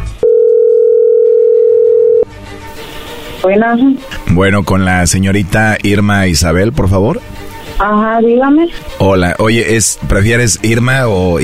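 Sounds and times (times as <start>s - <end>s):
telephone dial tone: 0.2s - 2.3s
speech: 3.4s - 11.4s.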